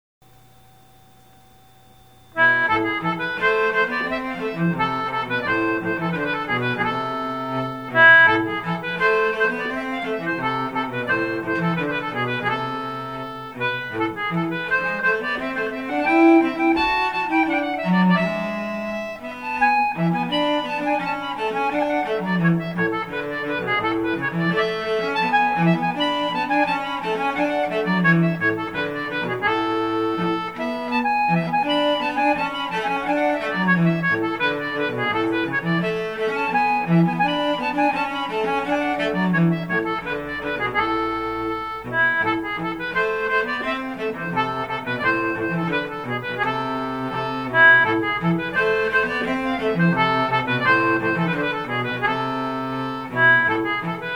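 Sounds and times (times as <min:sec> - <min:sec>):
Swedish concertina: 0:00.2 - 0:54.1.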